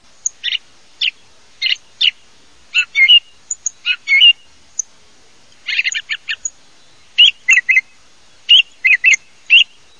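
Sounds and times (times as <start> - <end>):
thrush calls: 0.2 - 4.9, 5.6 - 6.5, 7.1 - 9.7.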